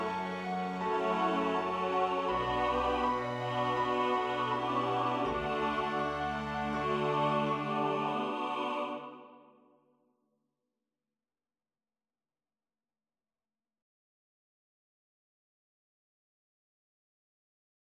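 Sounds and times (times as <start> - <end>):
accordion accompaniment: 0.0 - 9.1.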